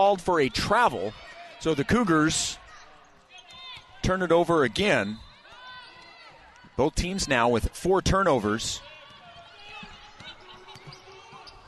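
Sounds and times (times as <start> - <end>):
commentator talking: 0.0 - 2.6, 4.0 - 5.2, 6.8 - 8.8
speech: 0.0 - 2.6, 4.0 - 5.2, 6.8 - 8.9
crowd noise: 0.0 - 11.6
basketball dribbled on the court during a BYU vs Nevada college game: 8.9 - 11.6.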